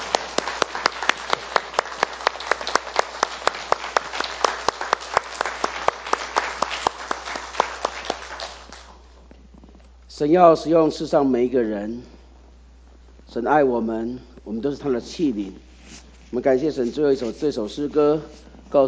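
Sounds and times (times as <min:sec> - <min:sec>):
audience applause: 0:00.0 - 0:09.1
speech: 0:10.2 - 0:12.2, 0:13.3 - 0:15.7, 0:16.3 - 0:18.8.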